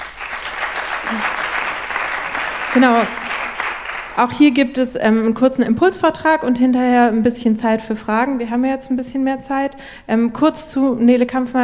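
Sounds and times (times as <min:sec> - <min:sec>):
audience applause at a talk event: 0:00.0 - 0:04.2
speech: 0:01.1 - 0:01.4, 0:02.8 - 0:03.3, 0:04.2 - 0:11.6.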